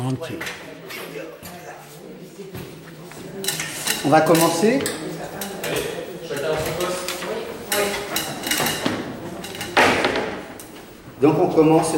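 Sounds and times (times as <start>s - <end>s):
speech: 0.0s - 0.7s, 4.0s - 5.0s, 11.2s - 11.9s
plates and glasses clinking as handed out at a dinner artwork: 3.3s - 10.6s.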